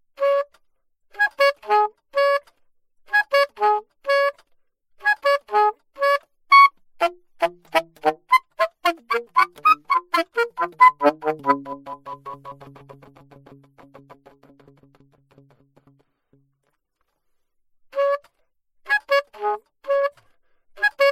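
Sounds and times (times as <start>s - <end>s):
alto saxophone: 0.2s - 0.5s, 1.2s - 2.5s, 3.1s - 4.4s, 5.0s - 16.5s, 18.9s - 21.0s.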